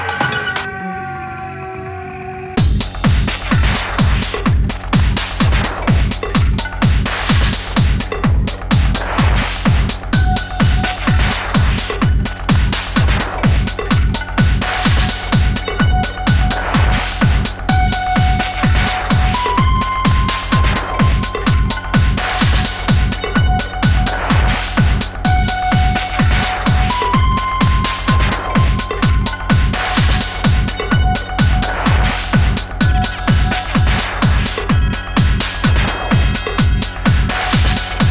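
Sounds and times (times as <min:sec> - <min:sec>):
industrial techno music: 0:00.0 - 0:38.0.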